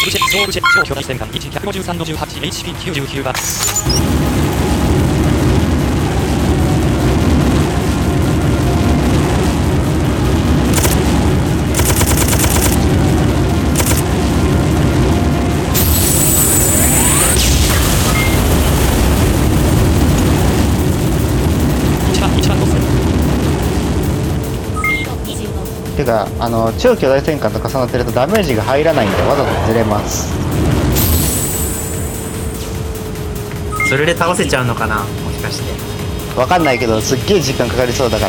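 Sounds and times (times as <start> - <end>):
speech: 0.0 - 4.4, 26.0 - 30.8, 33.9 - 38.2
explosion blasts in a shooter video game: 3.8 - 38.2
rapid gunfire in a shooter video game: 10.7 - 12.9, 13.7 - 14.1.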